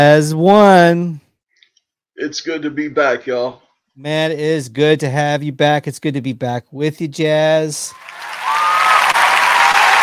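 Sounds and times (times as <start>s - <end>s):
speech: 0.0s - 1.2s, 2.2s - 8.3s
canned applause from a large crowd from a soundboard: 7.9s - 10.0s.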